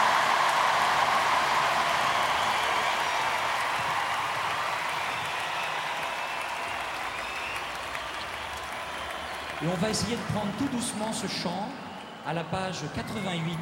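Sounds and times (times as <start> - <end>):
audience applauding the choir: 0.0 - 13.6
speech: 9.6 - 13.6.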